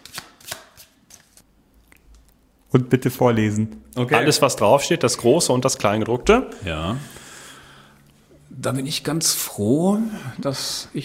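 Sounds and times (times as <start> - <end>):
playing cards being shuffled vigorously: 0.0 - 1.4
speech: 2.7 - 7.2, 8.6 - 11.0.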